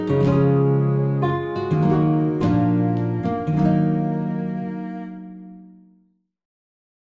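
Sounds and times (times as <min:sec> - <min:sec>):
Renaissance sarabande dance music: 0:00.2 - 0:05.2.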